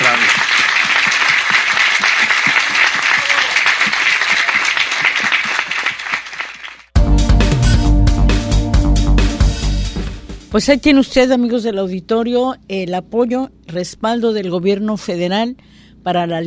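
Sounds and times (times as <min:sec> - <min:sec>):
audience applause: 0:00.0 - 0:07.0
loud music: 0:07.0 - 0:11.1
speech: 0:10.6 - 0:16.4.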